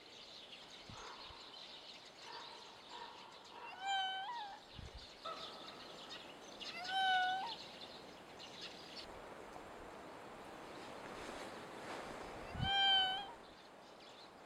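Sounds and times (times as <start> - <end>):
raccoon mewing cry: 3.6 - 4.6, 6.7 - 7.6, 12.5 - 13.4.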